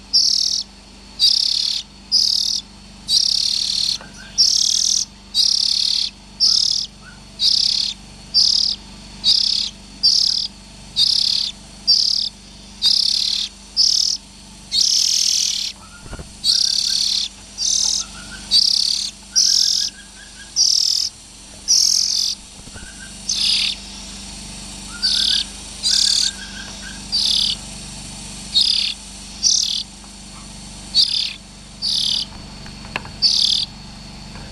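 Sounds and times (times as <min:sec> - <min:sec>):
juvenile Oriental magpie-robins hissing: 0:00.0 - 0:34.5
soft whistled notes: 0:15.7 - 0:20.6, 0:22.7 - 0:23.8, 0:24.9 - 0:27.5.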